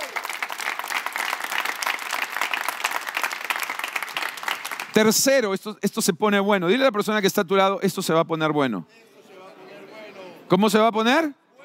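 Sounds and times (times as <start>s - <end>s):
audience applause: 0.0s - 5.0s
speech: 5.0s - 9.1s, 10.5s - 11.4s.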